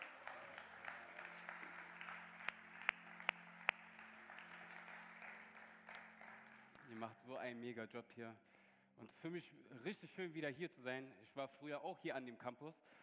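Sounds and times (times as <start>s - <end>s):
audience applause: 0.0s - 7.1s
speech: 6.9s - 13.0s.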